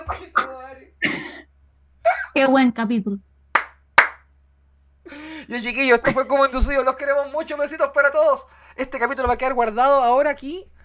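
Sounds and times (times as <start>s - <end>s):
laughter: 0.0s - 0.8s, 5.1s - 9.5s
speech: 2.4s - 3.3s, 5.5s - 10.8s
one person clapping: 3.6s - 4.2s.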